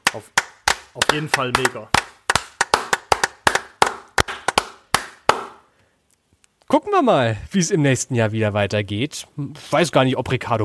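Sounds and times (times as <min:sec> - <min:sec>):
applause, hands clapping: 0:00.0 - 0:05.6
speech: 0:00.1 - 0:02.0, 0:06.7 - 0:10.6.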